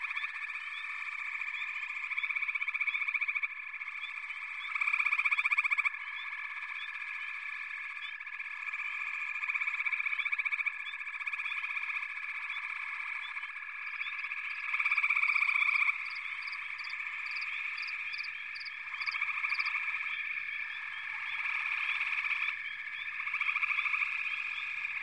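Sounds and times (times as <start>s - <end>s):
frogs calling in chorus: 0.0s - 25.0s.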